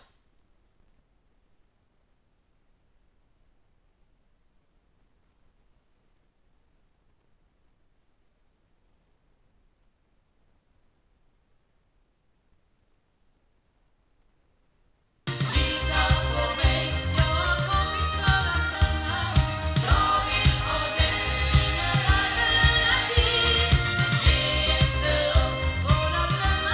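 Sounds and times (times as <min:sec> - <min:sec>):
loudspeakers: 0:15.3 - 0:26.7.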